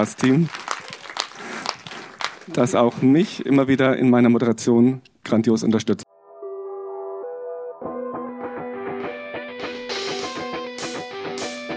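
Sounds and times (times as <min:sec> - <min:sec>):
speech: 0:00.0 - 0:00.6, 0:02.5 - 0:06.0
short applause: 0:00.0 - 0:02.9.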